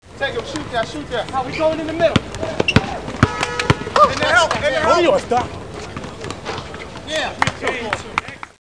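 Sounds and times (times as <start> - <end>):
ball: 0.4 - 4.6, 5.8 - 8.4.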